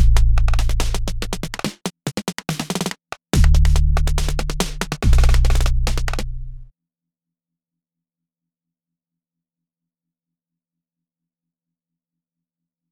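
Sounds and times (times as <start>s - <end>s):
bass: 0.0s - 1.6s, 3.4s - 6.7s.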